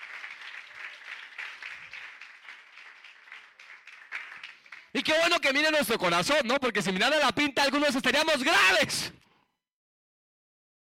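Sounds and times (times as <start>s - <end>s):
audience applause: 0.0s - 5.1s
speech: 5.0s - 9.2s.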